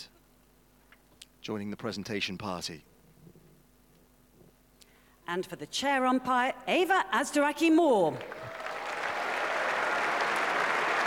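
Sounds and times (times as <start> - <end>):
speech: 1.5 - 2.9, 5.3 - 8.4
large crowd applause: 8.2 - 11.0.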